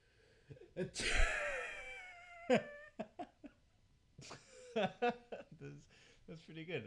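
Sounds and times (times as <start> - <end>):
speech: 0.5 - 1.4, 2.5 - 3.1, 4.2 - 6.8
person laughing: 0.8 - 3.6, 4.2 - 5.8
person imitating a sneeze: 0.9 - 1.8.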